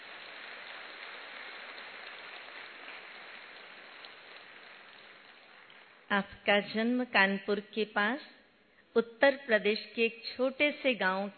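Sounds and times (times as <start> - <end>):
audience clapping: 0.0 - 6.0
speech: 6.1 - 8.4, 9.0 - 11.3.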